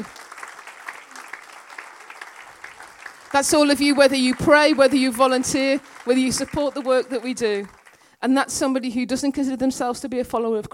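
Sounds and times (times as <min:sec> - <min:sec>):
audience applause: 0:00.0 - 0:08.1
speech: 0:03.3 - 0:10.7.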